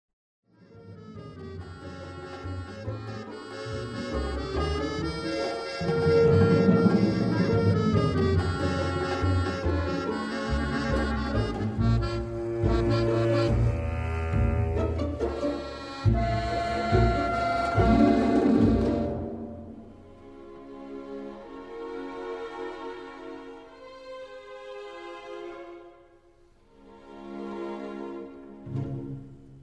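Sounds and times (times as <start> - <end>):
tense musical accent: 0.8 - 20.2.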